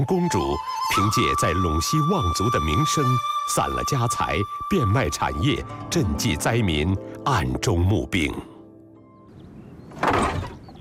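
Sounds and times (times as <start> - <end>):
speech: 0.0 - 8.5
wooden courtyard gate scraping open: 9.9 - 10.8.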